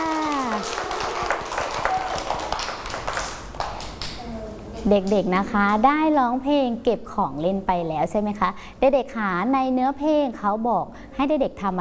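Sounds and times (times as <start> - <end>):
children clapping for themselves: 0.0 - 4.2
speech: 4.8 - 11.7.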